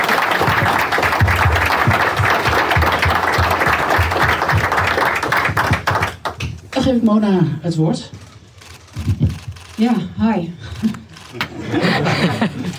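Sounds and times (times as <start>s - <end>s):
audience applause at a campaign event: 0.0s - 6.4s
speech: 6.9s - 8.2s, 9.0s - 12.6s
laughter: 10.6s - 12.7s.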